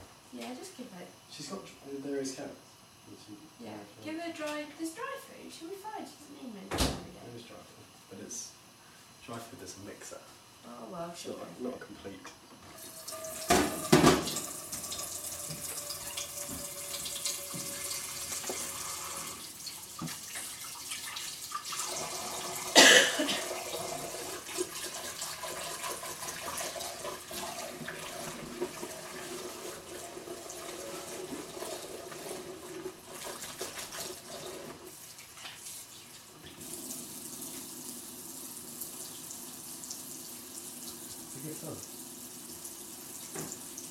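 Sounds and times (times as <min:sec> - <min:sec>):
speech: 0:00.4 - 0:08.6, 0:09.3 - 0:12.4
tap water running: 0:12.7 - 0:43.9.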